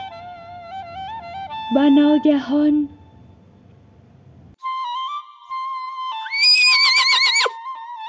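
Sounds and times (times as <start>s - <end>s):
speech: 1.7s - 3.0s
horse neighing: 6.3s - 7.5s.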